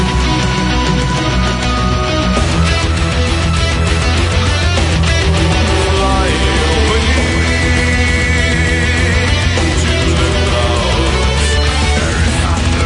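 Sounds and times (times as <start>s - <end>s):
symphonic metal music: 0.0s - 12.8s.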